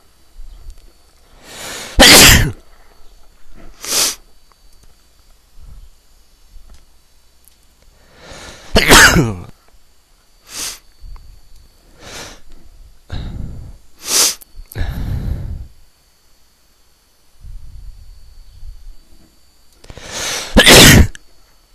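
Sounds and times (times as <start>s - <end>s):
man sneezing from allergy: 1.8s - 2.6s, 8.3s - 9.5s, 20.1s - 21.2s.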